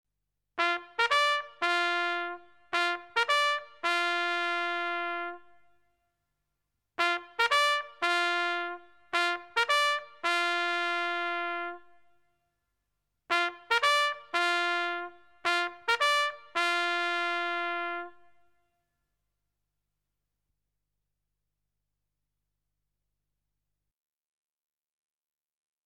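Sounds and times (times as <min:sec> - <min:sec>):
military trumpet call: 0:00.6 - 0:05.6, 0:07.0 - 0:12.0, 0:13.3 - 0:18.3.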